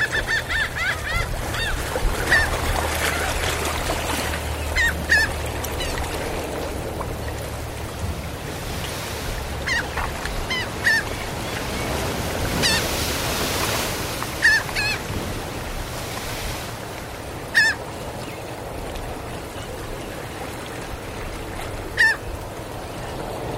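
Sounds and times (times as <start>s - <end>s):
seagulls calling by the tide pools: 0.0s - 15.8s, 17.4s - 18.7s, 21.0s - 23.5s
tide pools bubbling: 0.0s - 23.5s
waves lapping against the shore: 0.0s - 23.5s.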